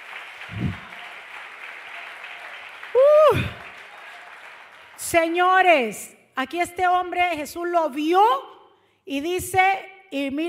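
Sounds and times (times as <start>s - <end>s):
audience applause: 0.0s - 5.1s
speech: 5.1s - 8.5s, 9.1s - 10.4s.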